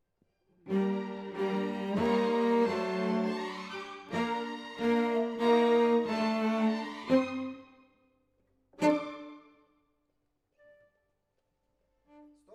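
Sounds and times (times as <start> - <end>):
cello solo: 0.7 - 7.8, 8.8 - 9.6.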